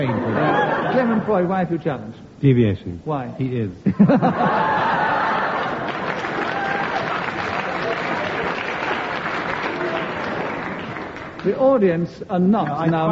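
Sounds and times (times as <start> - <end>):
laughter: 0.0 - 1.5, 3.8 - 8.6, 12.6 - 13.1
speech: 0.0 - 4.9, 11.4 - 13.1
audience applause: 4.6 - 11.6.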